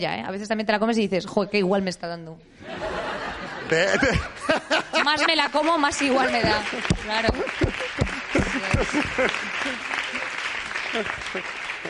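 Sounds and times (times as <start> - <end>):
speech: 0.0 - 2.9, 3.7 - 10.0, 10.9 - 11.8
laughter: 2.6 - 10.4
crowd applause: 5.0 - 11.8.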